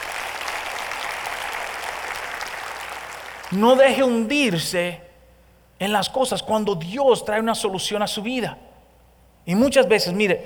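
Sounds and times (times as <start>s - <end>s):
audience applause: 0.0s - 3.6s
speech: 3.5s - 5.0s, 5.8s - 8.7s, 9.5s - 10.4s.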